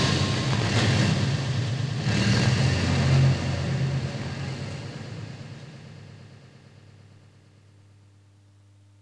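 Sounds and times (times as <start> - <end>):
city noises: 0.0 - 6.8.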